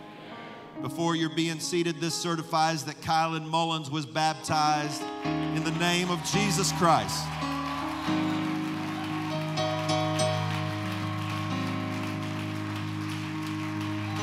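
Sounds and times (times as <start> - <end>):
sustained organ-like chords: 0.0 - 14.2
speech: 0.8 - 8.4
audience hand clapping: 5.0 - 14.2.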